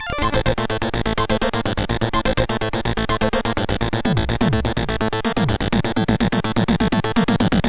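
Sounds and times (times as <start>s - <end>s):
SID MOS6581R2 chiptune tracker music intro: 0.1s - 7.6s.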